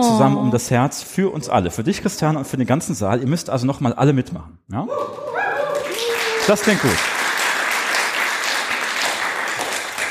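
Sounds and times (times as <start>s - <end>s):
speech: 0.0s - 5.3s, 6.4s - 7.1s
enthusiastic audience applauding in a hall during an event: 5.0s - 10.1s.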